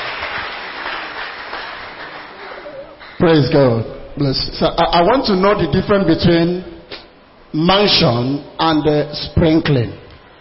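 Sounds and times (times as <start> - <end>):
church congregation clapping hands for Jesus: 0.0 - 3.8
speech: 3.2 - 6.7, 7.5 - 10.0.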